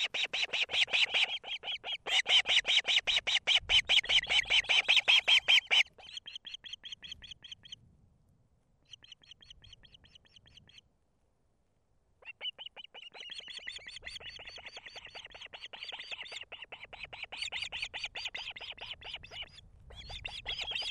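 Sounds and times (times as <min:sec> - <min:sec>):
Osprey chicks begging with harsh chirps and rising whistles: 0:00.0 - 0:07.8, 0:12.2 - 0:20.9.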